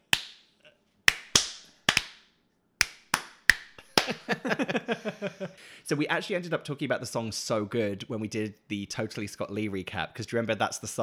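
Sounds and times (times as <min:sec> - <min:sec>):
kids clapping along with a song: 0:01.1 - 0:02.2, 0:02.8 - 0:04.2
laughter: 0:04.0 - 0:05.6
speech: 0:04.1 - 0:11.0.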